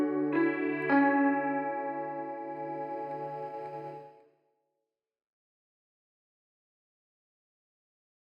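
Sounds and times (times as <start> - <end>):
guitar: 0.0 - 4.3.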